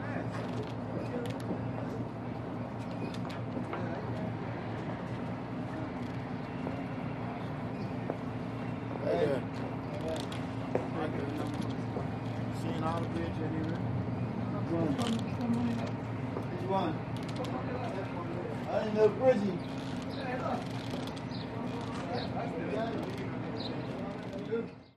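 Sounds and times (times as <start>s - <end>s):
ferry engine idling: 0.0s - 24.9s.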